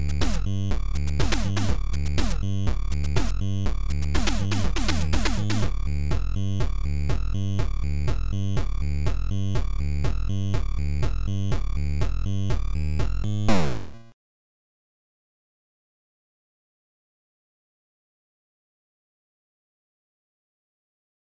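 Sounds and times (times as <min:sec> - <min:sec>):
techno music: 0:00.0 - 0:14.1.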